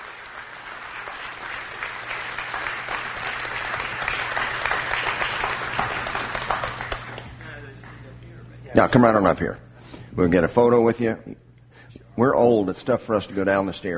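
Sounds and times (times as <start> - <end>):
audience applause: 0.0 - 8.0
speech: 8.8 - 9.6, 10.2 - 11.4, 12.2 - 13.9.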